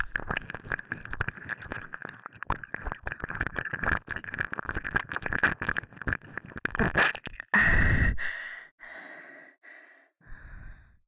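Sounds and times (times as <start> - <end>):
ASMR ear licking in the right ear: 0.0 - 7.6.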